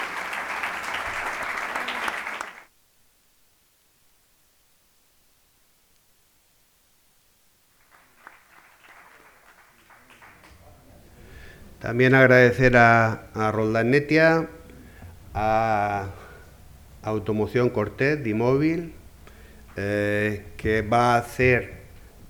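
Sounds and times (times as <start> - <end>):
audience applause: 0.0 - 2.7, 7.8 - 11.6
speech: 11.8 - 14.6, 15.4 - 16.2, 17.0 - 19.0, 19.8 - 21.8.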